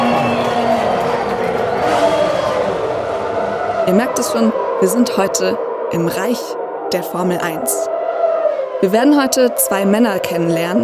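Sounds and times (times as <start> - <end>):
crowd cheering in the grandstands: 0.0 - 10.8
speech: 3.9 - 8.0, 8.8 - 10.8.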